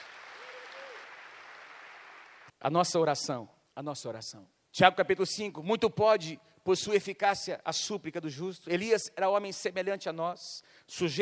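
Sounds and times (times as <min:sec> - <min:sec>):
audience applauding: 0:00.0 - 0:02.5
speech: 0:02.6 - 0:11.1.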